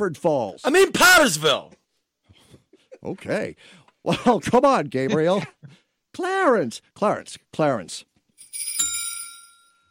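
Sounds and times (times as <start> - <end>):
speech: 0.0 - 1.8, 3.0 - 8.7
bell ringing: 8.4 - 9.8.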